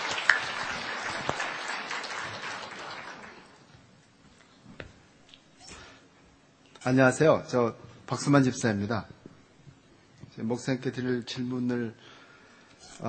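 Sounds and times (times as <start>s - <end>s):
audience applause: 0.0s - 3.7s
speech: 6.8s - 9.2s, 10.4s - 12.0s.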